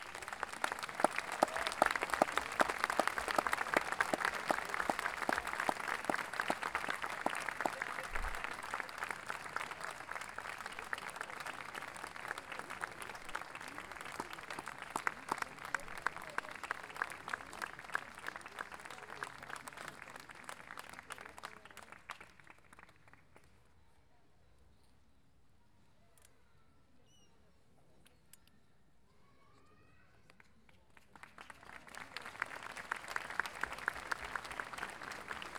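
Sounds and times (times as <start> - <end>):
audience applause at a music festival honoring its organizers: 0.0 - 23.0, 31.2 - 35.5.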